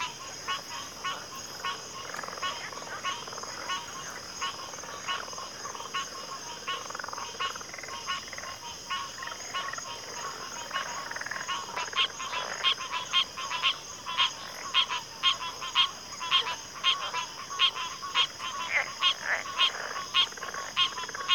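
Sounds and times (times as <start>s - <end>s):
chorus of crickets in a backwater: 0.0s - 21.3s.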